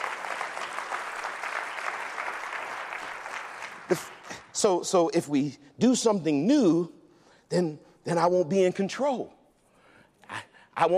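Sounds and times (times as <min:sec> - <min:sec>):
audience applause, hand clapping: 0:00.0 - 0:04.5
speech: 0:03.9 - 0:09.4, 0:10.8 - 0:10.9.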